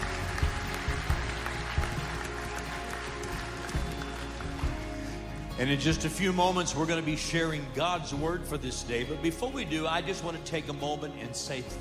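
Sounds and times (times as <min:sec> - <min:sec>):
church congregation applauding to welcome guests at an Easter Sunday service: 0:00.0 - 0:07.0
speech: 0:05.6 - 0:11.8.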